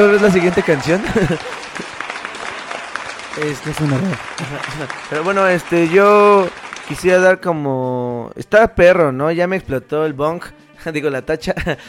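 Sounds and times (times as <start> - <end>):
speech: 0.0 - 1.6, 3.4 - 11.8
laughter: 0.0 - 6.3
applause: 0.0 - 7.4.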